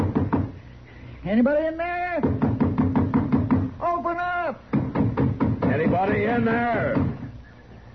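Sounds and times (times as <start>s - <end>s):
knocking on a door: 0.0s - 0.6s, 2.2s - 3.7s, 4.7s - 7.3s
speech: 1.2s - 2.5s, 5.8s - 7.1s.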